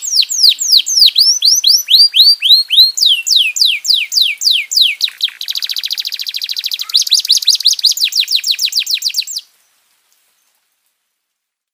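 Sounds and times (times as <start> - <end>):
domestic canary song: 0.0 - 10.5.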